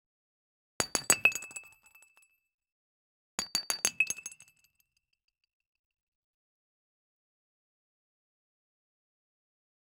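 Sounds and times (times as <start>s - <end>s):
glass: 0.8s - 2.3s, 3.4s - 4.9s.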